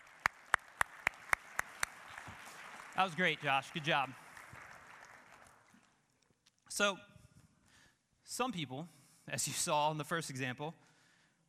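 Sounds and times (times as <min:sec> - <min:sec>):
hand claps after a performer finishes: 0:00.0 - 0:06.2
speech: 0:03.0 - 0:04.2, 0:06.8 - 0:07.1, 0:08.3 - 0:10.8.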